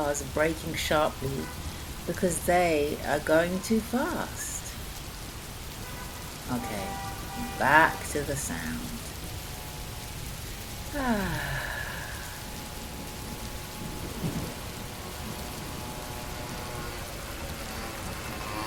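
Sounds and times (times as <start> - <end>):
rain falling: 0.0 - 18.6
speech: 0.1 - 4.6, 6.5 - 9.0, 10.9 - 11.7.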